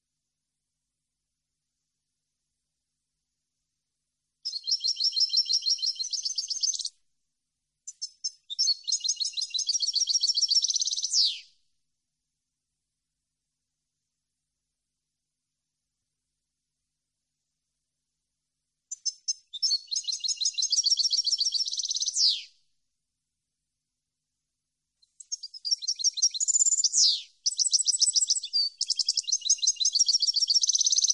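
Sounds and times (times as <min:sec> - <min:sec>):
European goldfinch song: 0:04.5 - 0:06.9, 0:07.9 - 0:11.4, 0:18.9 - 0:22.5, 0:25.2 - 0:31.1.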